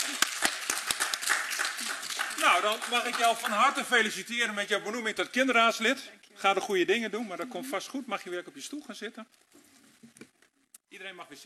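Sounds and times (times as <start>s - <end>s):
group of people applauding: 0.0s - 4.2s
speech: 2.4s - 9.6s, 11.0s - 11.4s.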